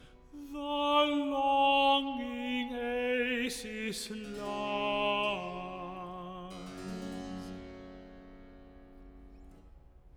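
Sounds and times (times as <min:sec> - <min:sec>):
person singing recitative: 0:00.0 - 0:07.4.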